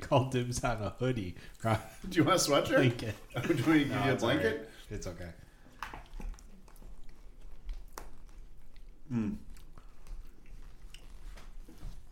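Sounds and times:
speech: 0.1 - 5.4, 9.1 - 9.5
chewing close to the microphone: 5.5 - 12.1.

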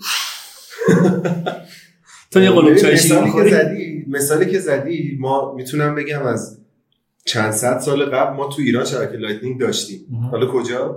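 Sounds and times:
laughter: 0.7 - 4.9
speech: 0.8 - 6.6, 7.2 - 10.9
person taking a quick breathy inhale: 1.6 - 2.4.

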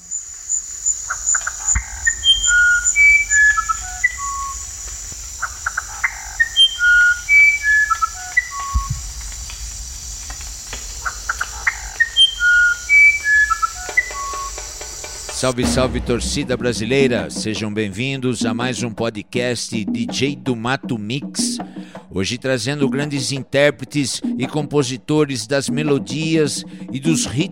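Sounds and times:
musician wren singing flute-like whistled notes: 0.0 - 15.6
steady high insect drone: 0.0 - 15.6
speech: 15.4 - 27.4.

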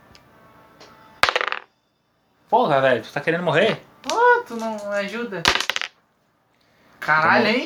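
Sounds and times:
dice clattering onto a hard surface: 1.2 - 1.7, 4.6 - 6.0
speech: 2.5 - 5.7, 7.1 - 7.6.

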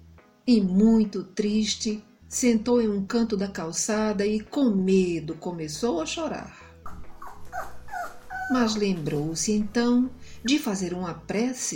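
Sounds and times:
speech: 0.5 - 6.6, 8.5 - 11.7
dog barking: 6.8 - 8.7.

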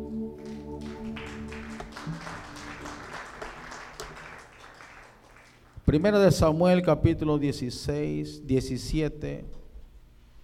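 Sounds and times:
sustained musical chord: 0.0 - 4.5
crowd clapping in a reverberant room: 0.4 - 6.0
speech: 5.9 - 9.6.

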